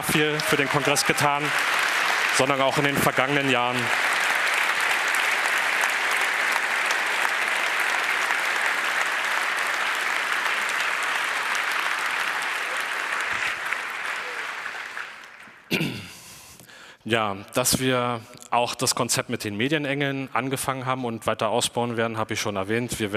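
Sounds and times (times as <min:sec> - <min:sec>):
speech: 0:00.0 - 0:01.8, 0:02.4 - 0:04.1, 0:17.1 - 0:23.1
applause: 0:00.0 - 0:15.9.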